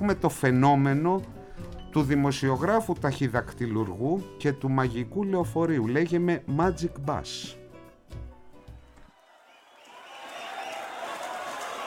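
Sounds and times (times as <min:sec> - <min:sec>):
speech: 0:00.0 - 0:01.4, 0:02.0 - 0:07.6
audience applauding: 0:09.1 - 0:11.8.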